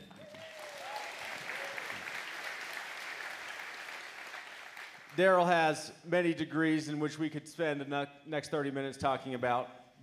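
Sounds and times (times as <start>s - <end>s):
audience applause welcoming a speaker at a church campus gathering: 0.0s - 5.2s
speech: 5.2s - 10.0s.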